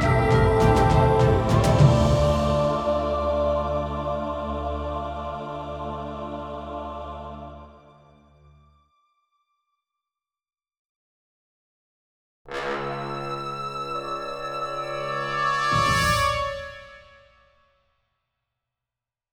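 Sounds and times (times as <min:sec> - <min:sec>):
ethnic action film score: 0:00.0 - 0:08.2, 0:12.5 - 0:17.4.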